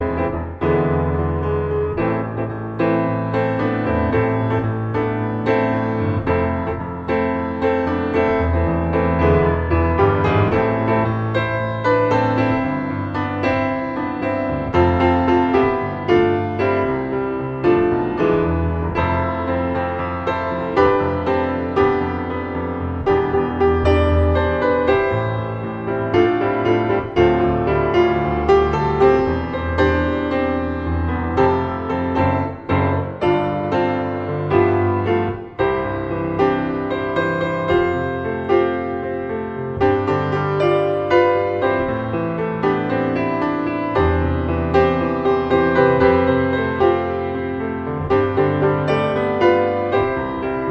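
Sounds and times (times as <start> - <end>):
transitional improvisation on a grand piano: 0.0 - 50.6.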